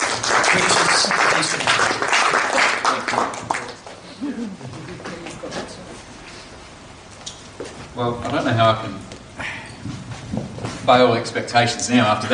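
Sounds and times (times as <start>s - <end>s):
audience applause: 0.0s - 4.0s
speech: 0.6s - 1.9s, 8.0s - 9.1s, 10.9s - 12.3s.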